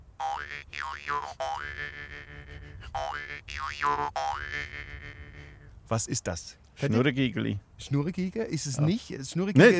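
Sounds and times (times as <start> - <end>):
jaw harp twanging: 0.2 - 2.0, 3.0 - 4.9
speech: 0.9 - 5.2, 5.9 - 9.7.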